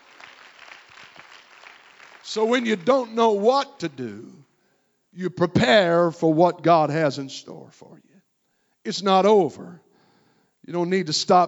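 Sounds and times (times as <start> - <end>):
audience clapping hands: 0.0 - 3.9
speech: 2.3 - 4.5, 5.2 - 8.1, 8.8 - 9.8, 10.6 - 11.4.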